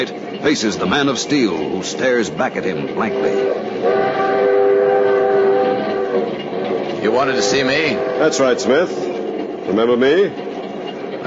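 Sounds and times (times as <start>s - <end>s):
speech: 0.0s - 4.2s, 7.0s - 10.5s
moving train rumbling: 0.0s - 11.2s
train horn tones: 1.1s - 9.7s.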